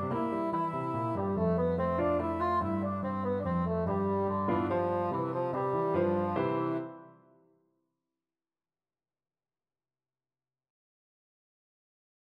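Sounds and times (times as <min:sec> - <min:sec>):
bassoon: 0:00.0 - 0:07.2.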